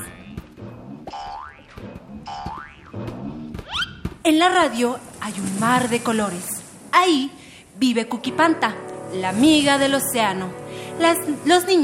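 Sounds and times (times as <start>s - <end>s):
cartoon boing effects of bouncing balls: 1.0s - 4.1s
speech: 4.2s - 11.8s
busy music: 7.9s - 11.8s.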